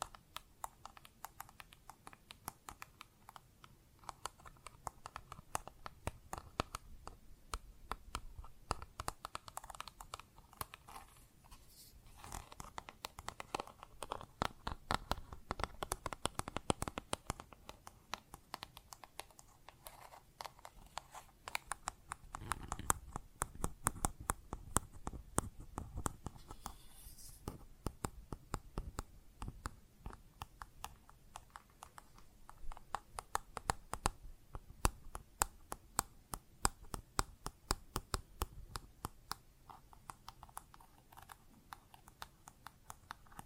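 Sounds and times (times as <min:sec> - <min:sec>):
plastic objects tapped and scratched: 0:00.0 - 0:11.2, 0:12.1 - 0:43.4.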